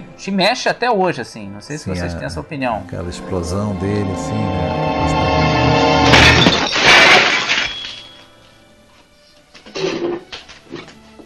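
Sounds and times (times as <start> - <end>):
speech: 0.2 - 5.8
plates and dishes smashed off a table: 6.0 - 8.3.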